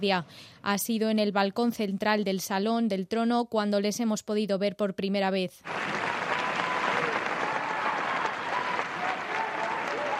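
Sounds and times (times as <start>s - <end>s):
speech: 0.0s - 6.0s
warm applause from large standing crowd: 5.6s - 10.1s.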